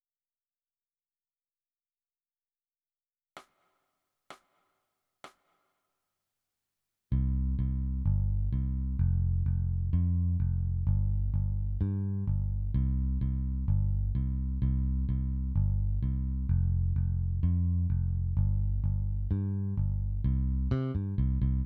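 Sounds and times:
bass: 7.1s - 21.6s.

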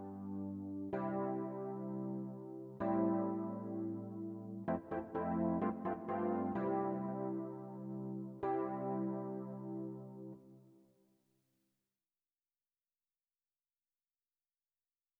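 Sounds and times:
electric piano: 0.0s - 10.6s.

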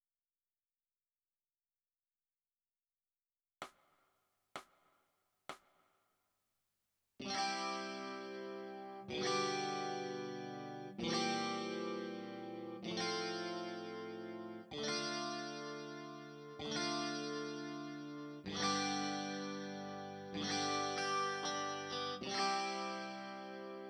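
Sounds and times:
electric guitar: 7.2s - 23.8s.

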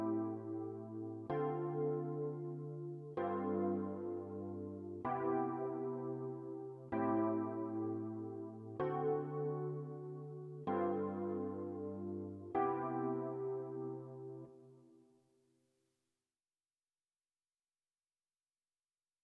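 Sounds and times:
electric piano: 0.0s - 15.0s.

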